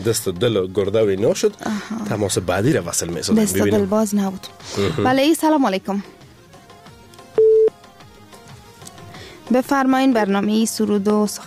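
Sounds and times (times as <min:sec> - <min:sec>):
speech: 0:00.0 - 0:06.2, 0:09.5 - 0:11.4
telephone busy tone on a phone-in line after a dropped call: 0:07.4 - 0:07.7.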